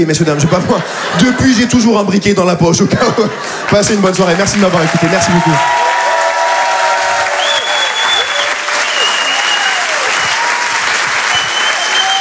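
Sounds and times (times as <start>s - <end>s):
speech: 0.0s - 6.0s
laughter: 0.1s - 5.6s
audience applause: 3.4s - 12.1s
faint whoops: 5.4s - 12.1s.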